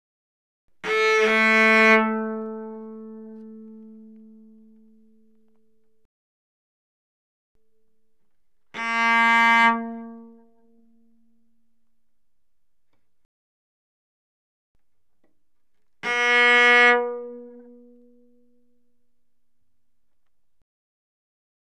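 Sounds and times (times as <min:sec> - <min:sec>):
cello bowed fortissimo on A string: 0:00.8 - 0:05.6, 0:08.7 - 0:11.6, 0:16.0 - 0:18.9.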